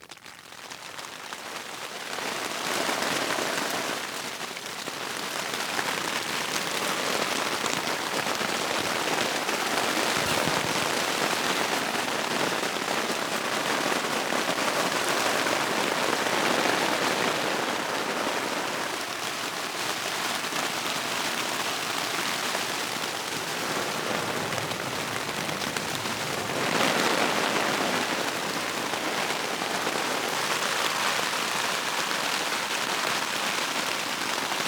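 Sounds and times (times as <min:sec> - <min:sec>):
daytime city rain on an awning: 0:00.0 - 0:34.6.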